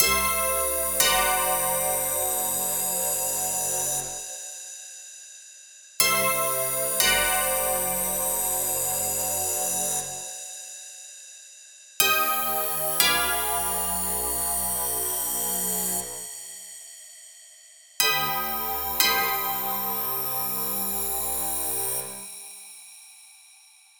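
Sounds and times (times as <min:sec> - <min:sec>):
horror theme music loop: 0:00.0 - 0:04.2, 0:06.0 - 0:10.2, 0:12.0 - 0:16.2, 0:18.0 - 0:22.2.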